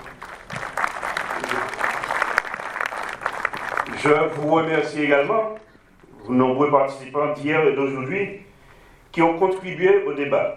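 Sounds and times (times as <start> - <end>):
applause: 0.0 - 5.7
speech: 4.0 - 5.5, 6.3 - 8.4, 9.2 - 10.5.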